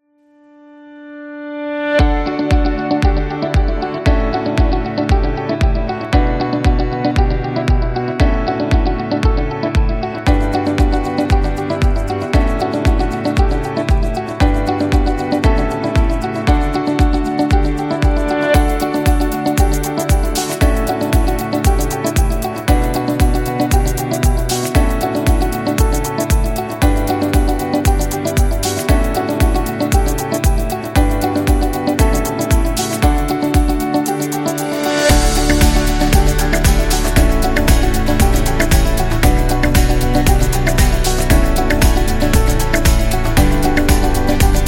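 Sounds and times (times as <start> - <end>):
corporate music: 1.8 - 44.6.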